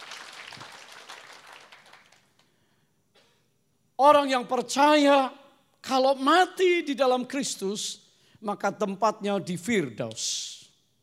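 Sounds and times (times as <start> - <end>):
crowd clapping: 0.0 - 2.6
speech: 4.0 - 10.6.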